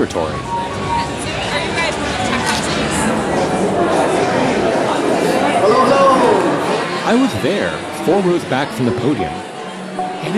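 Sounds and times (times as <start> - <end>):
speech: 0.0 - 0.6, 7.1 - 9.4
crowd chatter in a packed room: 0.0 - 10.3.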